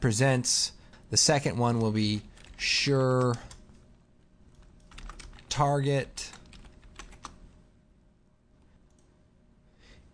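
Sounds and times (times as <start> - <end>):
speech: 0.0 - 3.5, 5.6 - 6.4
computer keyboard typing: 1.8 - 3.8, 4.5 - 5.6, 6.2 - 7.4.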